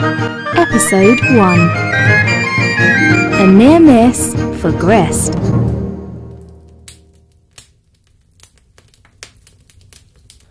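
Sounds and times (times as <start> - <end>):
speech: 0.7 - 1.8, 2.8 - 5.6
crackling log fire: 5.4 - 10.4.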